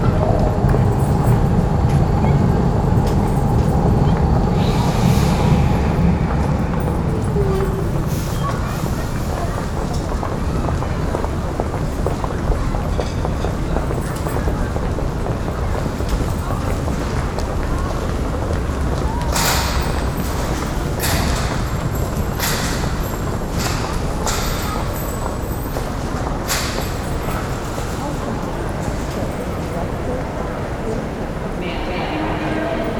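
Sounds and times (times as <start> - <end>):
urban and suburban ambience: 0.0 - 32.9.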